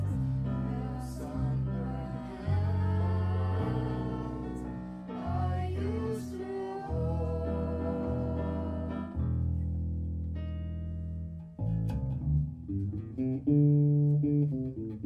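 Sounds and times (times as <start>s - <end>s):
jazz standard improvisation: 0.0s - 15.0s.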